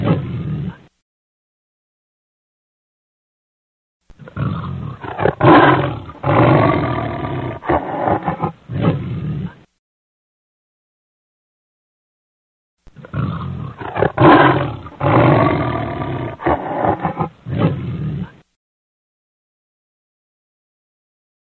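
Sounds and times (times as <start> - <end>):
lion roaring: 0.0 - 0.9, 4.2 - 9.7, 13.0 - 18.4.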